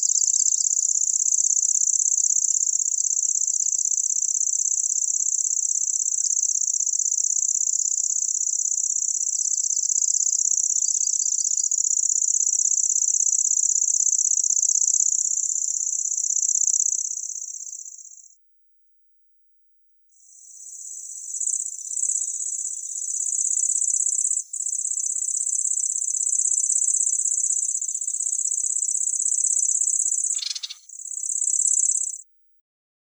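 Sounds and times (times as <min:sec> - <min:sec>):
spotted cricket chirping: 0:00.0 - 0:18.4, 0:19.9 - 0:32.5.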